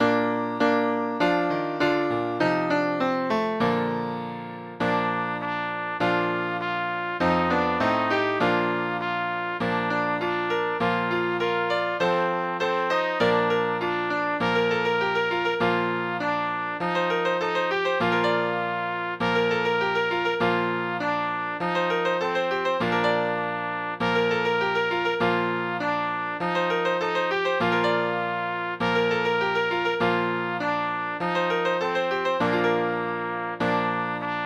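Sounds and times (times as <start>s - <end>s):
piano: 0.0s - 34.4s
trumpet: 0.0s - 34.4s.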